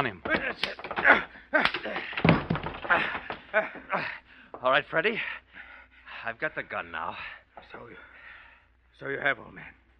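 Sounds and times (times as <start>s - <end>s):
speech: 0.0s - 0.8s, 4.8s - 5.4s, 6.2s - 8.1s, 9.0s - 9.8s
man crashing into empty wooden crates: 0.3s - 3.6s.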